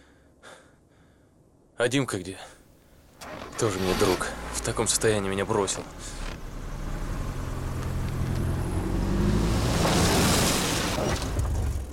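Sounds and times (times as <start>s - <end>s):
speech: 1.8s - 2.6s, 3.6s - 6.2s
car pulling up to a house: 3.0s - 11.9s.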